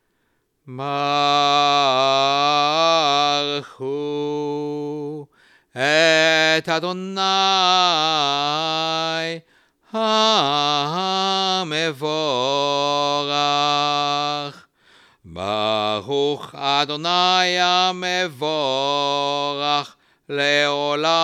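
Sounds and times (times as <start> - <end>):
liturgical chant: 0.7 - 14.7, 15.3 - 21.2.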